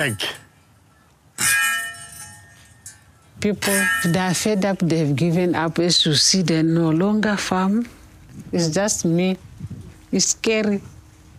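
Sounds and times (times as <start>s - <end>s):
speech: 0.0s - 0.4s, 3.4s - 9.5s, 10.1s - 11.0s
metal clanging noisemaker to scare elephants: 1.4s - 5.4s.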